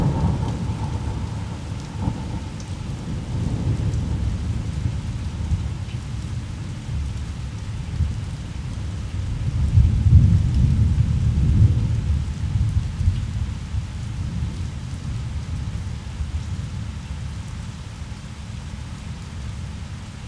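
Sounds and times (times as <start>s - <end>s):
thunder rumble: 0.0s - 5.8s, 9.6s - 12.7s
rain: 0.0s - 20.2s.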